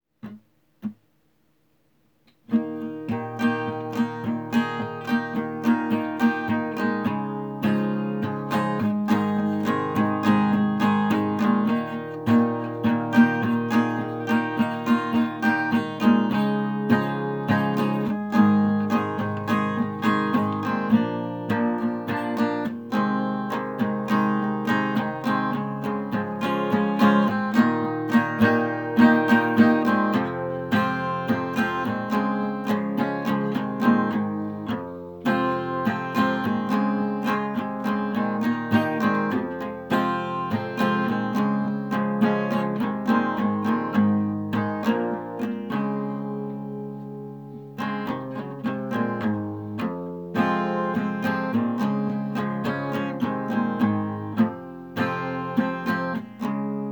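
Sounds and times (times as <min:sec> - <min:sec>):
acoustic music: 0:00.2 - 0:56.9.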